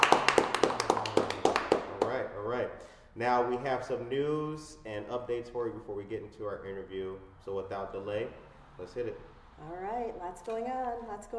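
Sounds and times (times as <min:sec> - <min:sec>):
round of applause: 0:00.0 - 0:02.2
speech: 0:03.2 - 0:11.3.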